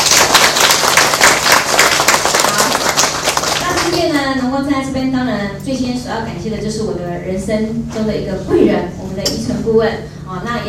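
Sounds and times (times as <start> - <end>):
enthusiastic audience applause: 0.0 - 4.0
speech: 4.4 - 10.6.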